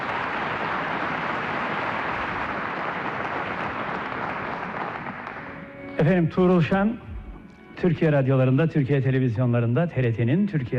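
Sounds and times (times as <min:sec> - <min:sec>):
audience applause: 0:00.0 - 0:06.6
speech: 0:06.0 - 0:07.0, 0:07.8 - 0:10.7.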